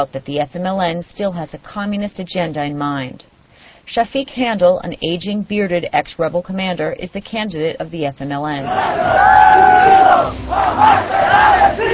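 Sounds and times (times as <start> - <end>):
speech: 0.0 - 3.3, 3.9 - 11.9
large crowd singing a revolutionary song at a political rally: 8.7 - 11.9.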